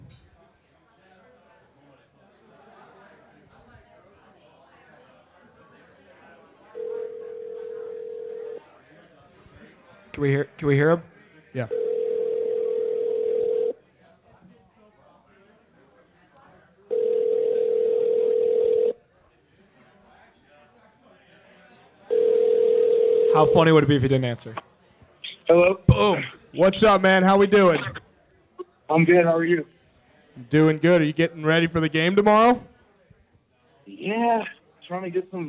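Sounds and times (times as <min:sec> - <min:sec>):
telephone ringback tones while placing a call: 0:06.8 - 0:08.6, 0:11.7 - 0:13.8, 0:16.9 - 0:19.0, 0:22.1 - 0:23.6
speech: 0:10.2 - 0:11.8, 0:23.4 - 0:24.7, 0:25.5 - 0:28.0, 0:28.9 - 0:29.8, 0:30.4 - 0:32.7, 0:34.0 - 0:35.4.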